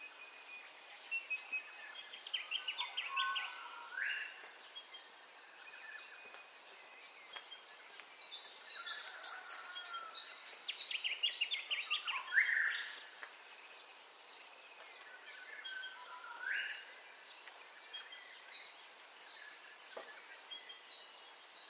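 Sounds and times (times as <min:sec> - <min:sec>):
several birds chirping and whistling in a dawn chorus: 0:00.0 - 0:21.6.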